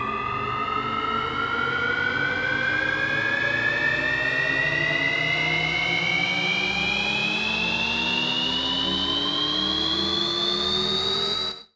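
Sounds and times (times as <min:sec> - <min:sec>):
turbine starting: 0:00.1 - 0:11.6.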